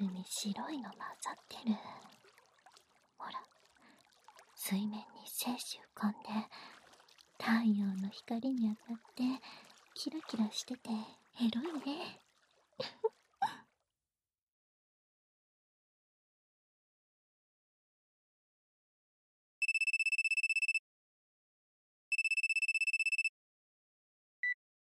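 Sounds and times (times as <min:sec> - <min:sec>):
short splashy noises: 0:00.0 - 0:13.6
speech: 0:00.2 - 0:02.2, 0:04.7 - 0:06.8, 0:07.4 - 0:12.2, 0:12.8 - 0:13.6
telephone ringing for an incoming call: 0:19.6 - 0:20.8, 0:22.1 - 0:23.3.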